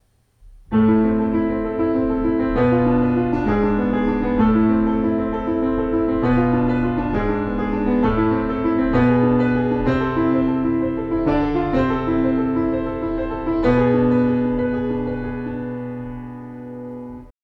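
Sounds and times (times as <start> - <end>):
piano triplet variation: 0.4 - 17.3.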